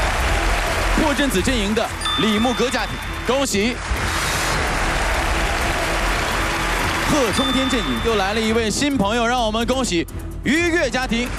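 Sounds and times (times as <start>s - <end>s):
audience applause on a family competition show: 0.0s - 8.6s
speech: 1.0s - 4.1s, 7.1s - 11.3s.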